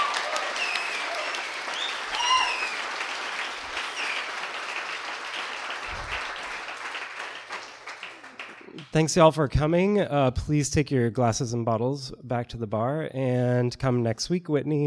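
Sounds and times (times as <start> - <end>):
whoops from audience: 0.0 - 2.9
audience applause: 0.0 - 8.9
speech: 8.9 - 14.8.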